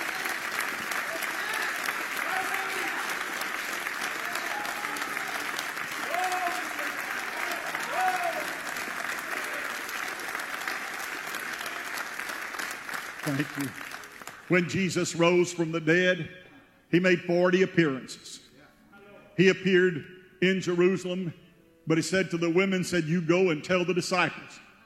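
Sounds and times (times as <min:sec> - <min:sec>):
large crowd clapping: 0:00.0 - 0:14.8
speech: 0:13.3 - 0:13.9, 0:14.5 - 0:18.4, 0:19.4 - 0:24.6.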